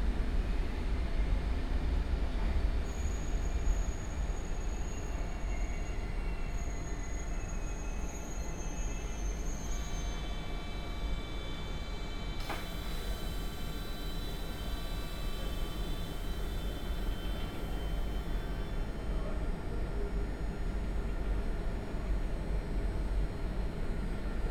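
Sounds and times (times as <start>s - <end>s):
train entering Brussels-Midi station, rail rumble: 0.0s - 24.4s
train wheel squeal: 2.9s - 18.8s.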